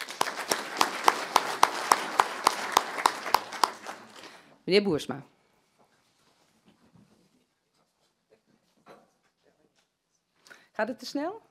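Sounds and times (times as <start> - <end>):
applause: 0.0 - 4.5
speech: 4.7 - 5.4, 10.8 - 11.4.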